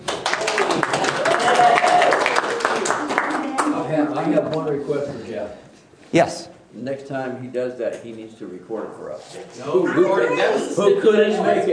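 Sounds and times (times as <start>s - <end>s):
audience applause: 0.0s - 3.8s
person cheering: 1.2s - 2.3s
speech: 4.8s - 11.7s.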